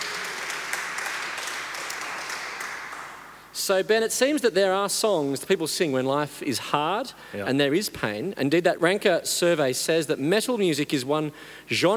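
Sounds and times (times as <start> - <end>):
audience applause: 0.0 - 3.2
speech: 3.6 - 11.9.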